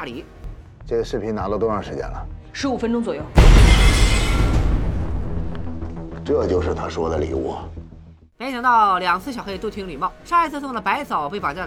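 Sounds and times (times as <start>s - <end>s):
speech: 0.0s - 4.6s, 6.3s - 7.8s, 8.4s - 11.6s
debris hissing: 3.4s - 6.1s
explosion: 3.4s - 6.3s.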